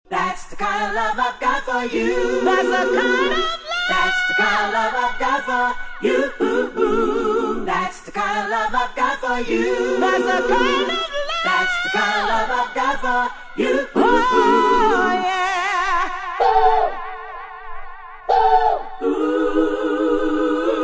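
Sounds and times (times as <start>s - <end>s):
a cappella singing: 0.1s - 20.8s.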